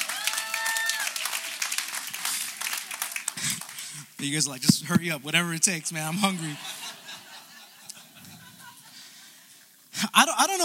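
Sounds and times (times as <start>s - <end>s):
whistles and cheers: 0.0s - 1.7s
crowd applauding: 0.0s - 4.2s
speech: 4.2s - 6.8s, 10.2s - 10.6s
laughter: 6.1s - 9.1s.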